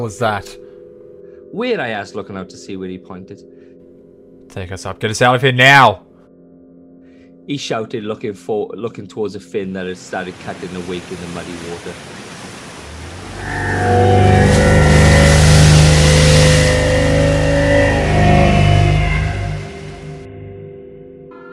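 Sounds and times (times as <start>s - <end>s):
speech: 0.0s - 0.6s, 1.5s - 3.5s, 4.5s - 6.0s, 7.5s - 12.4s
shuttle engine struggling to lift off: 13.2s - 20.3s.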